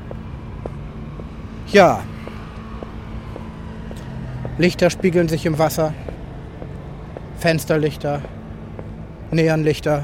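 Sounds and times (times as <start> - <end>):
small car engine droning as it drives away: 0.0 - 10.0
speech: 1.7 - 2.1, 4.6 - 6.1, 7.4 - 8.4, 9.3 - 10.0.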